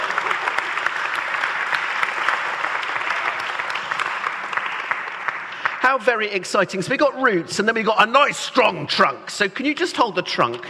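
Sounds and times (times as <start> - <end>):
audience applause: 0.0 - 6.0
speech: 5.9 - 10.6.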